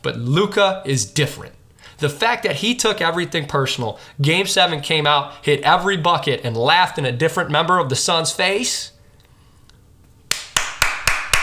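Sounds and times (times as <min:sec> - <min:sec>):
speech: 0:00.0 - 0:09.0
clapping: 0:10.3 - 0:11.4.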